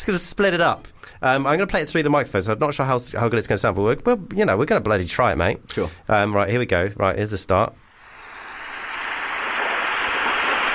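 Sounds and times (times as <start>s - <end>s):
speech: 0.0s - 7.8s
rain and thunder sound effect: 8.1s - 10.7s.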